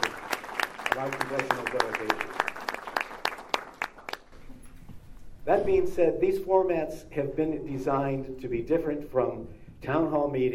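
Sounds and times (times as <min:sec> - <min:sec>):
sparse hand claps: 0:00.0 - 0:04.4
speech: 0:01.0 - 0:02.4, 0:05.5 - 0:10.5.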